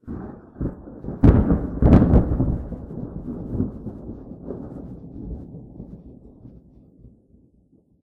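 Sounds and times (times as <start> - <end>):
thunder: 0.0 - 7.9.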